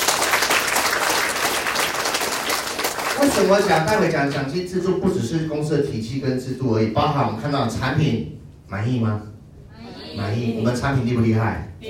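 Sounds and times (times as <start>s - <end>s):
audience applause: 0.0s - 4.0s
speech: 3.2s - 9.3s, 10.2s - 11.8s.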